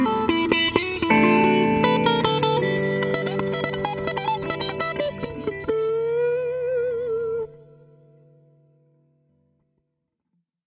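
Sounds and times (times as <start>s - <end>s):
jazzy inside chords improvisation: 0.3s - 8.0s.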